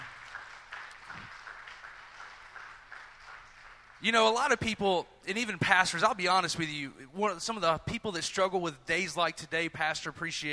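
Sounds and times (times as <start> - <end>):
crowd clapping hands: 0.0 - 4.7
speech: 4.0 - 10.5.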